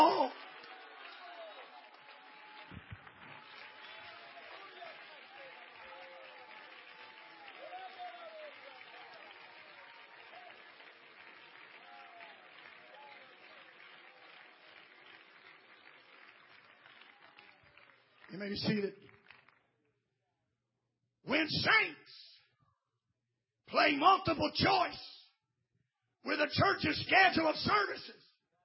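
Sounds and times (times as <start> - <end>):
audience clapping: 0.0 - 19.8
speech: 18.3 - 19.0, 21.5 - 22.1, 23.8 - 25.1, 26.2 - 28.2.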